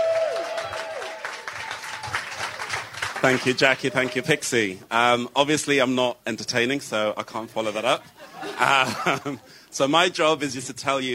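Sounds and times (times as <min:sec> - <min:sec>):
audience cheering: 0:00.0 - 0:04.6
speech: 0:03.2 - 0:11.1
laughter: 0:07.9 - 0:09.5.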